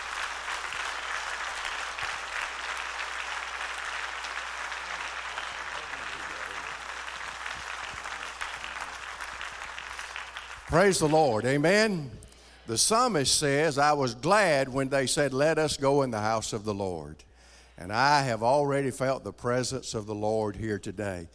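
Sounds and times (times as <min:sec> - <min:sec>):
audience applause: 0:00.0 - 0:11.4
speech: 0:10.7 - 0:21.3.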